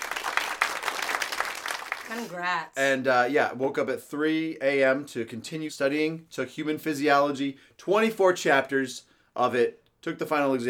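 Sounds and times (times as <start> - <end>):
applause sound effect: 0.0 - 2.3
speech: 2.1 - 10.6.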